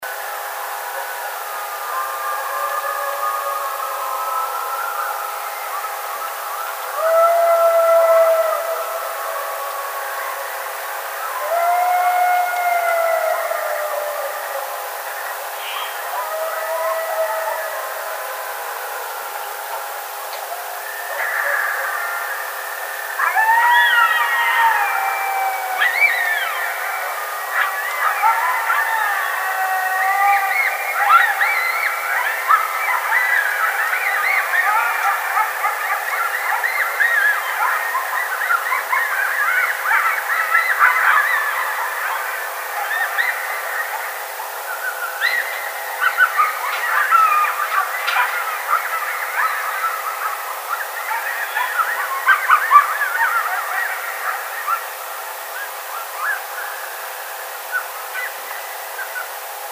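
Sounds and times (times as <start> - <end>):
coyote howling: 1.0 - 59.3.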